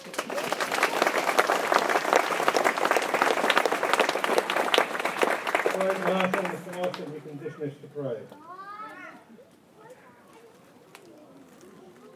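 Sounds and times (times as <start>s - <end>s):
audience applause for cadets: 0.0s - 7.3s
speech: 6.0s - 8.6s.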